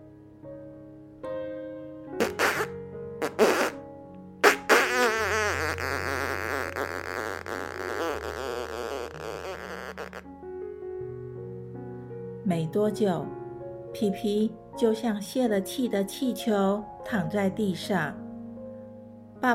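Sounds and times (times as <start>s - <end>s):
fart: 2.2s - 10.3s
speech: 12.5s - 13.4s, 14.0s - 18.2s.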